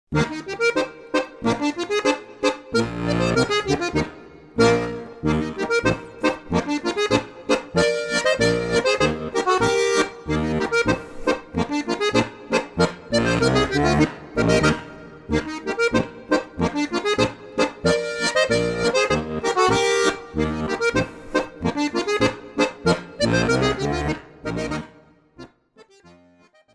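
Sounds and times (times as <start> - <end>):
harmonica: 0.1 - 26.7.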